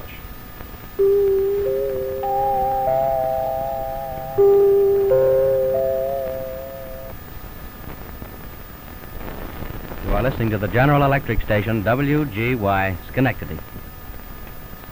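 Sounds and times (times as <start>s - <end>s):
chimes: 1.0s - 8.1s
station ident: 1.0s - 8.7s, 9.7s - 13.6s.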